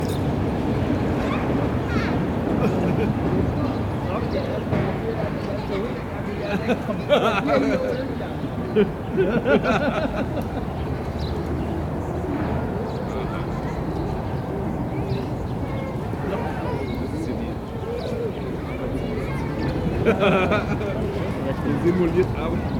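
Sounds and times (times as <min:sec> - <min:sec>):
kids and their parents at a playground in Berlin: 0:00.0 - 0:22.7
mid close traffic in Berlin: 0:00.0 - 0:22.7
laughter: 0:01.5 - 0:04.6, 0:05.2 - 0:11.3, 0:19.2 - 0:22.7.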